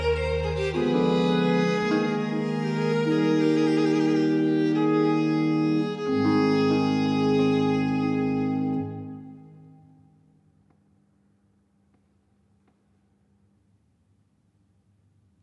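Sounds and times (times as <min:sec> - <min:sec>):
allegro sonata movement in B flat major: 0:00.0 - 0:10.1.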